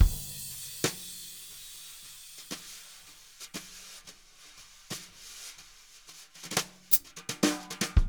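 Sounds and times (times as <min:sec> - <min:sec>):
jazz brush drum loop: 0:00.0 - 0:03.5.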